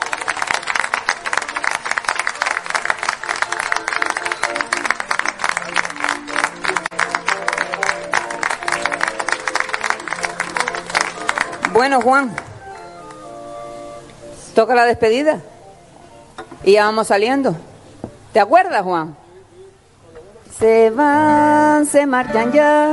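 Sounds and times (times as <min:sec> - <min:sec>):
crowd applause: 0:00.0 - 0:12.5
speech: 0:11.8 - 0:12.5, 0:14.6 - 0:15.5, 0:16.6 - 0:17.7, 0:18.3 - 0:19.2, 0:20.6 - 0:22.9.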